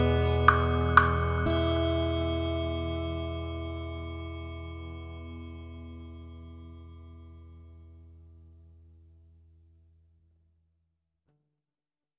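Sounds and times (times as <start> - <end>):
guitar soundscape: 0.0 - 9.5.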